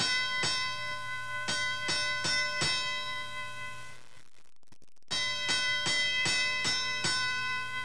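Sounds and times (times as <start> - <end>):
fire alarm sound effect: 0.0 - 4.1, 5.1 - 7.8.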